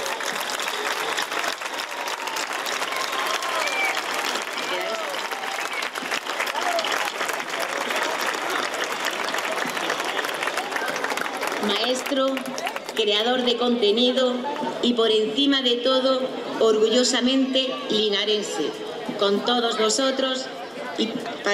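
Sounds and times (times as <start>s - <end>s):
crowd applauding: 0.0s - 13.4s
speech: 11.9s - 21.5s.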